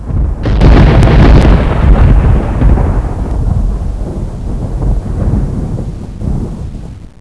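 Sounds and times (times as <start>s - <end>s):
thunder: 0.0s - 7.1s.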